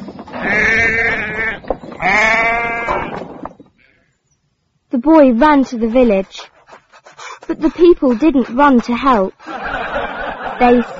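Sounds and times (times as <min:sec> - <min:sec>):
sheep bleating: 0:00.4 - 0:03.2, 0:03.8 - 0:04.1
speech: 0:05.0 - 0:06.5, 0:07.5 - 0:09.5, 0:10.6 - 0:10.9
laughter: 0:06.6 - 0:10.9.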